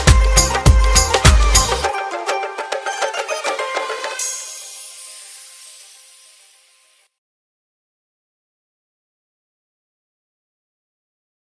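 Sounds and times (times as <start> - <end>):
trance remix of a Punjabi song: 0.0 - 4.7.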